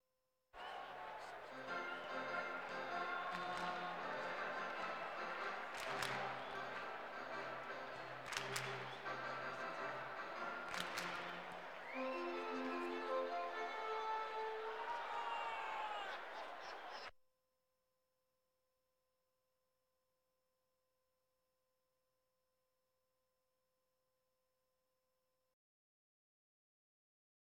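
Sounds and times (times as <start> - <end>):
sports crowd: 0.6 - 17.1.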